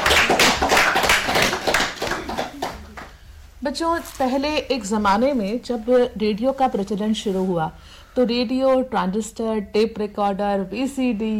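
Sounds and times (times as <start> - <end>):
children clapping: 0.0 - 3.2
speech: 3.6 - 11.3.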